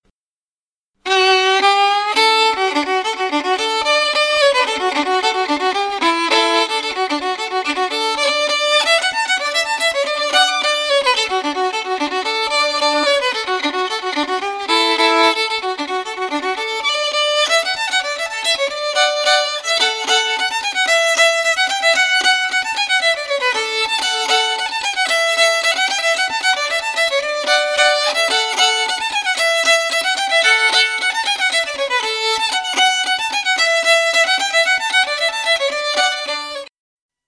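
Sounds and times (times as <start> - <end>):
fiddle: 1.0 - 36.7.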